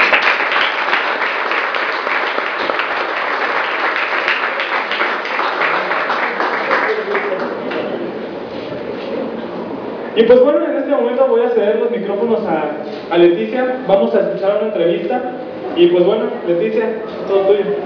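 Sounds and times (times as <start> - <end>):
audience applause: 0.0 - 8.0
speech: 10.2 - 17.8.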